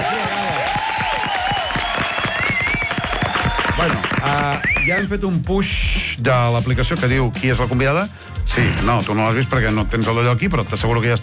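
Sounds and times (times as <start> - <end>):
studio audience applause: 0.0 - 5.0
speech: 3.8 - 11.2.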